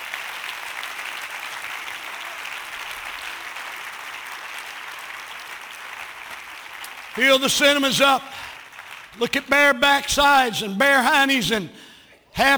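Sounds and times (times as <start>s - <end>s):
hand clapping: 0.0s - 9.6s
speech: 7.2s - 8.4s, 9.2s - 11.8s, 12.4s - 12.5s.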